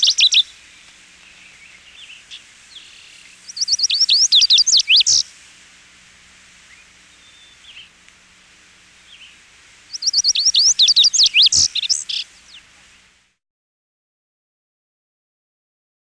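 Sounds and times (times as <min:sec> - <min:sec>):
Lazuli Bunting bird songs: 0:00.0 - 0:05.3, 0:06.6 - 0:08.0, 0:09.0 - 0:13.0.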